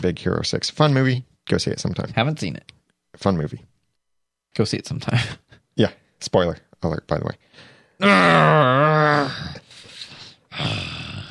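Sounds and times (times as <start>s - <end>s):
speech: 0.0s - 3.7s, 4.5s - 9.6s, 10.6s - 10.9s
person growling: 8.0s - 9.7s, 10.5s - 11.2s.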